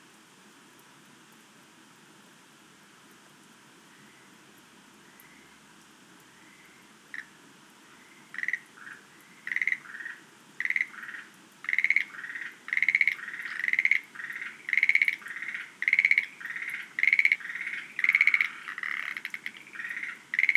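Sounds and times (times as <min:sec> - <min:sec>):
Schlegel's green tree frog rattling calls: 0:06.4 - 0:20.5.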